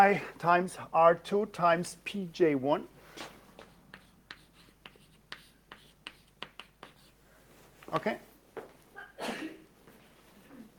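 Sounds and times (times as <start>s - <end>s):
speech: 0.0s - 3.4s, 7.9s - 8.3s
person sneezing: 9.0s - 9.6s.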